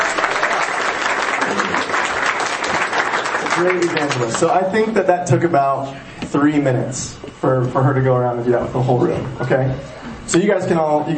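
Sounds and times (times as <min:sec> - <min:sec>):
audience applause from a room of people: 0:00.0 - 0:04.6
speech: 0:03.6 - 0:11.1.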